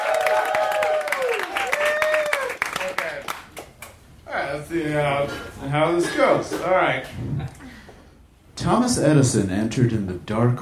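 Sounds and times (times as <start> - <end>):
voices whooping and cheering: 0.0 - 3.0
crowd clapping: 0.0 - 4.0
speech: 4.7 - 7.3, 8.6 - 10.6.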